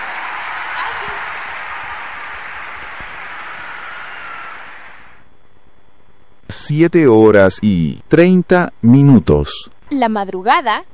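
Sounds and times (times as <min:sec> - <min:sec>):
audience applause: 0:00.0 - 0:05.2
speech: 0:06.5 - 0:10.9.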